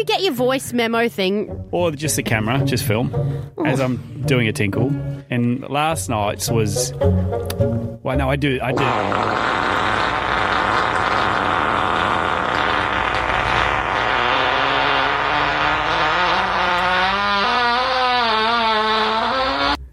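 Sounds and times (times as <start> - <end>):
speech: 0.0 - 9.8
long loud fart: 8.7 - 19.9.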